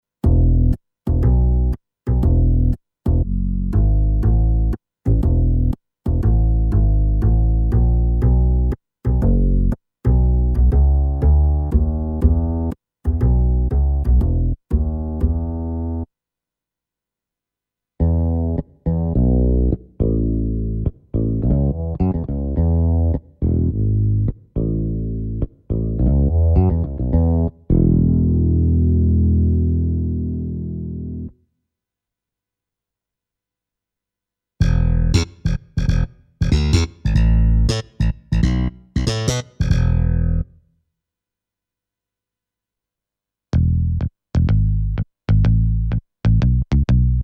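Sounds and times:
bass: 0:00.2 - 0:16.1, 0:18.0 - 0:31.5, 0:34.6 - 0:40.7, 0:43.5 - 0:47.2.

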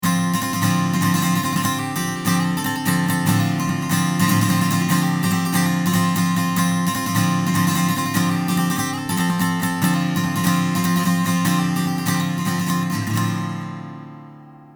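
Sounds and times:
acoustic guitar through Chandler TG1: 0:00.0 - 0:14.7.

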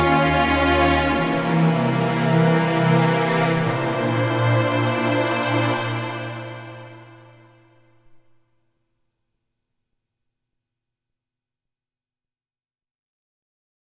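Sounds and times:
Sequential Prophet X warm arco strings: 0:00.0 - 0:08.2.

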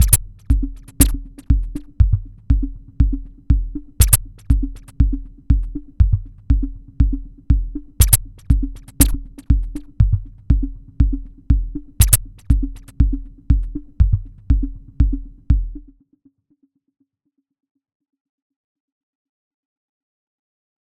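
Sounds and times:
bass drum through Dreadbox Drips V2 delay: 0:00.0 - 0:15.9.

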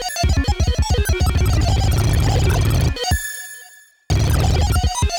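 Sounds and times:
synthesizer melody with Euclidean rhythm and tempo change: 0:00.2 - 0:03.0, 0:04.1 - 0:05.0.

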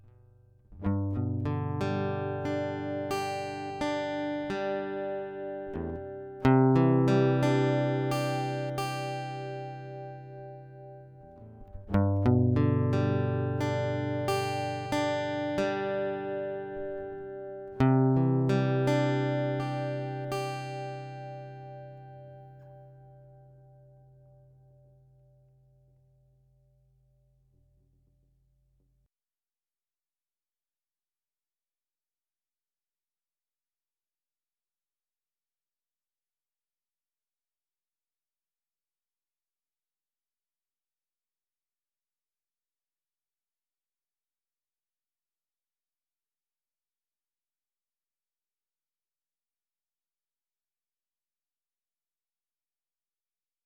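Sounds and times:
guitar through Golden Age PREQ Neve 1073 preamp: 0:00.8 - 0:23.8.

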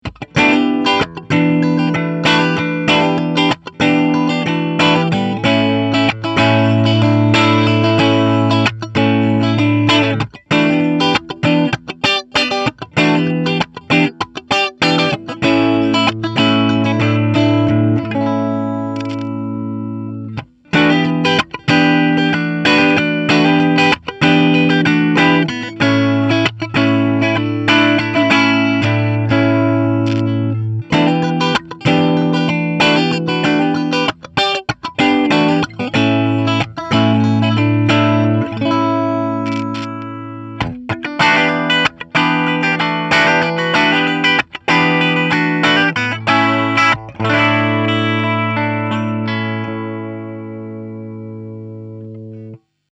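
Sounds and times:
electric guitar through Pentode amp switching clean and dirty: 0:00.0 - 0:52.9.

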